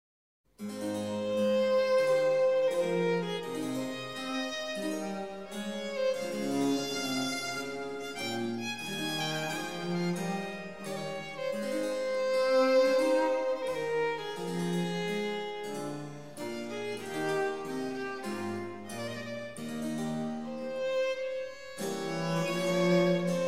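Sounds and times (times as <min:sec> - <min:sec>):
violin sonata in A minor: 0:00.6 - 0:23.4.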